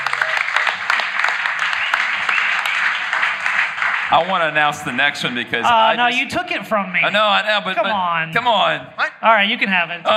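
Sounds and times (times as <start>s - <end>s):
audience applause: 0.0s - 5.5s
speech: 4.1s - 10.1s.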